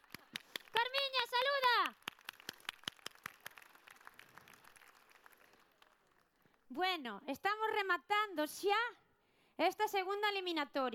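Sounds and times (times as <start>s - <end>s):
audience applause: 0.0s - 0.7s, 2.0s - 6.3s
speech: 6.7s - 9.0s, 9.6s - 10.9s.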